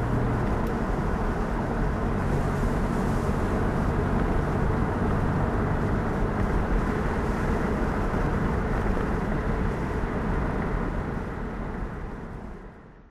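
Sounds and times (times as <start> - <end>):
Jaguar XJ6 4.2 coupe with manual gearbox driving: 0.0 - 12.8.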